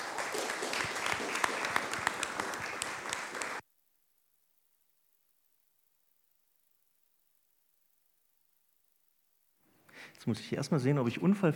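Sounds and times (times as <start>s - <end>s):
audience applause: 0.0s - 3.6s
speech: 10.1s - 11.5s.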